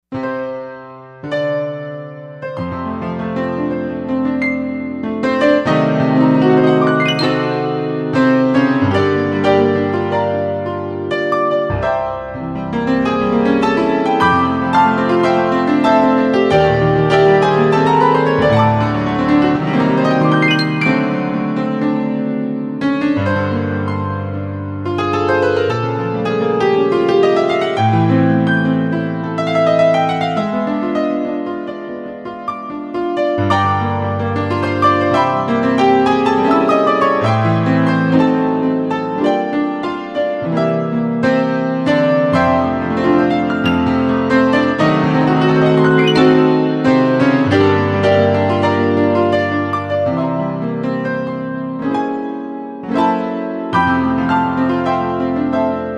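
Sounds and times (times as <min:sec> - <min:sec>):
piano: 0:00.0 - 0:55.9.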